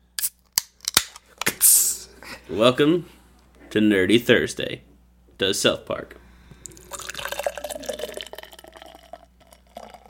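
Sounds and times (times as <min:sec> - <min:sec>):
speech: 0:01.6 - 0:01.8, 0:02.5 - 0:06.2
beer being poured into a glass: 0:06.6 - 0:10.0.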